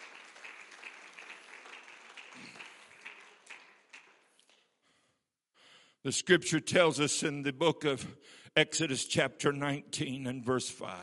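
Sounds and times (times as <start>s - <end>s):
crowd clapping: 0.0s - 4.7s
speech: 6.0s - 11.0s.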